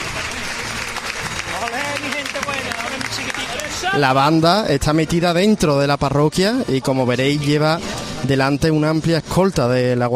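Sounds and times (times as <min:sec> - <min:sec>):
crowd applause at a religious procession: 0:00.0 - 0:04.4
speech: 0:01.6 - 0:10.1.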